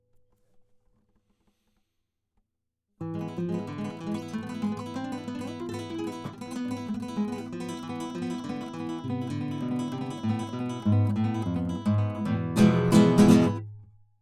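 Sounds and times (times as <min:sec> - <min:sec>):
guitar bridge: 0:03.0 - 0:13.9.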